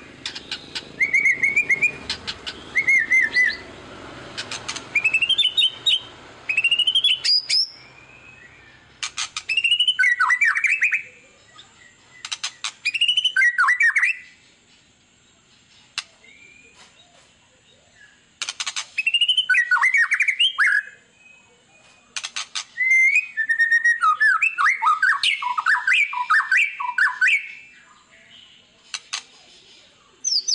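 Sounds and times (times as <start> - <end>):
white-rumped shama singing whistled phrases: 0.2 - 3.7, 4.9 - 14.4, 16.2 - 16.8, 19.0 - 22.1, 22.8 - 27.9, 30.2 - 30.5.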